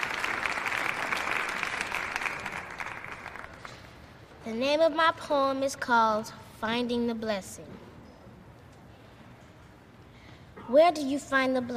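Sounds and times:
applause: 0.0s - 4.0s
speech: 4.4s - 7.8s, 10.7s - 11.7s.

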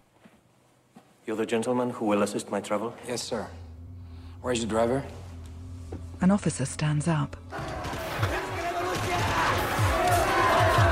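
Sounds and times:
speech: 1.3s - 3.6s, 4.4s - 5.2s, 6.2s - 7.6s
angry crowd rioting outside and attacking armed guards: 7.5s - 10.9s.

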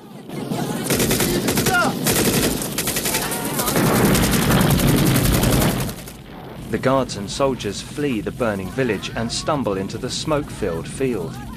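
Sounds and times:
machine-gun fire hitting parked trucks on a bridge: 0.0s - 7.5s
speech: 6.8s - 11.5s.

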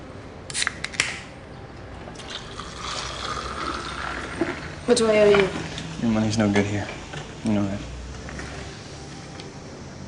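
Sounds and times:
can popping open with clicks and hiss: 0.5s - 1.3s
fizzing liquid pouring into a glass: 2.2s - 4.8s
speech: 4.9s - 7.9s.

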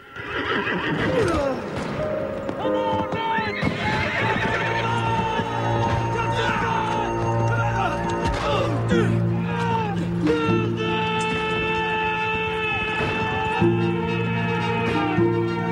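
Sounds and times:
horse rearing and neighing amid a battle: 0.0s - 1.8s, 2.9s - 7.0s
hoofbeats: 0.0s - 15.7s.

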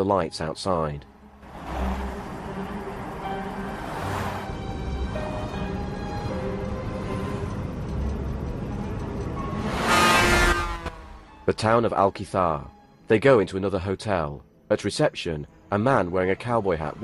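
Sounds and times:
speech: 0.0s - 1.1s, 11.5s - 17.0s
highway road noise: 0.0s - 11.6s
vehicles whooshing past on highway: 1.1s - 11.3s
car engine hum driving through highway traffic: 1.1s - 11.4s.

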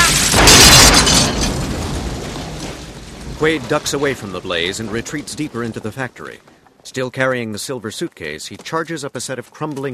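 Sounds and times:
taxi cab crashing into a wall and exploding: 0.0s - 6.4s
speech: 3.4s - 9.9s.

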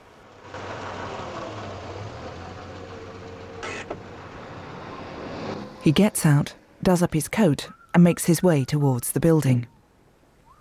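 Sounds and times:
car engine idling while parking: 0.0s - 6.8s
speech: 5.8s - 9.7s.

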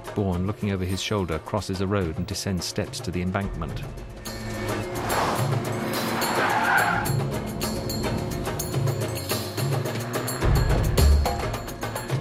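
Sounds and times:
speech: 0.2s - 4.2s
BMW engine roar speeding: 4.3s - 12.1s
BMW tire squeal skidding around a corner: 4.9s - 7.8s.

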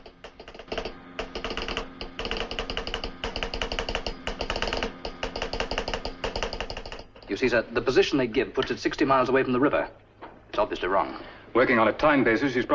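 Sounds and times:
telegraph operator tapping out Morse code: 0.0s - 7.4s
speech: 7.3s - 10.0s, 10.6s - 12.7s.

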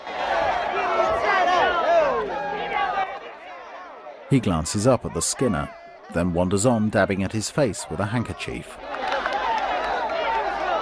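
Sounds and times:
excited crowd shouting while watching a man skin a muskrat: 0.0s - 6.2s, 8.4s - 10.8s
speech: 4.3s - 9.1s.

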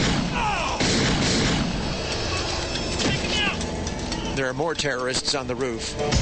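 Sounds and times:
sharp gunshots: 0.0s - 2.3s, 3.0s - 3.6s
loud dense rumbling noise: 0.0s - 4.4s
speech: 4.4s - 6.1s.

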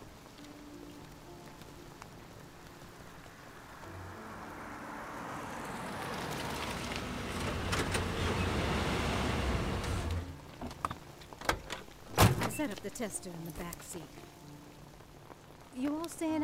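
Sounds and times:
truck engine rumbling and idling: 4.1s - 12.8s
speech: 12.6s - 14.4s, 15.8s - 16.4s.

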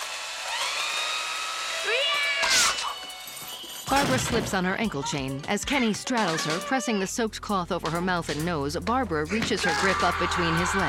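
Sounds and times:
electric mixer whirring: 0.0s - 2.4s
speech: 3.9s - 10.8s.

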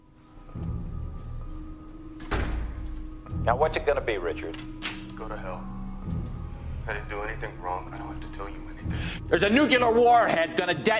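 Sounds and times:
security door of a holding room closing firmly: 2.2s - 3.1s, 4.5s - 5.2s
speech: 3.4s - 6.2s, 6.9s - 10.9s.

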